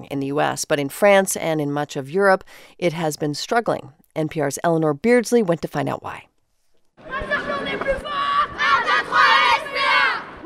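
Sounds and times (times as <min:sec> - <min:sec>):
speech: 0:00.0 - 0:06.3
girls' soccer team cheering and chanting at train station: 0:07.0 - 0:10.4.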